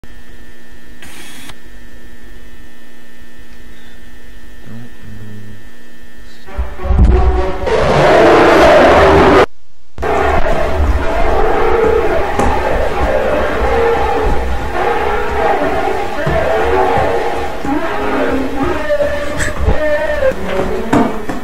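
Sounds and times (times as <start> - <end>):
backroom monster sound: 6.5 - 21.0.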